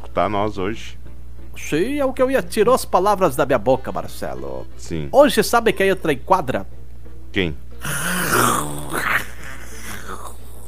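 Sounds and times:
speech: 0.2s - 1.0s, 1.6s - 8.6s
person imitating a panther's growl: 7.8s - 10.6s.

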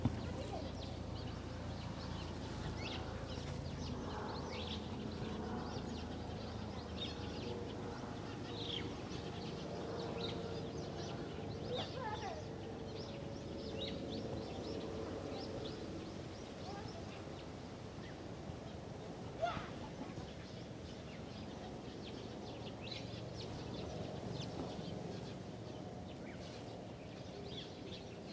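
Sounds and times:
many birds chattering in a large tree in a park: 0.0s - 28.3s.

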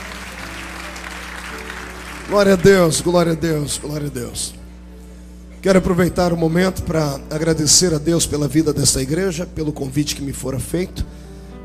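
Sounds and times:
audience applauding: 0.0s - 4.0s
faint steady hum: 0.0s - 11.6s
speech: 2.3s - 4.6s, 5.6s - 11.3s.

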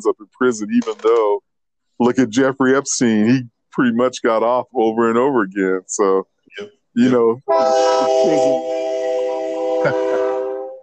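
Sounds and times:
speech: 0.0s - 8.8s, 9.8s - 10.1s
train horn of an approaching train: 7.5s - 10.8s.

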